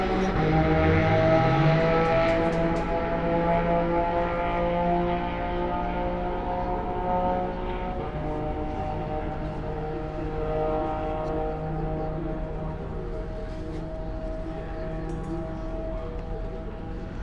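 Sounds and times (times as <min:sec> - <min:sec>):
Corvette and Audi cars before Tertre Rouge: 0:00.0 - 0:17.2.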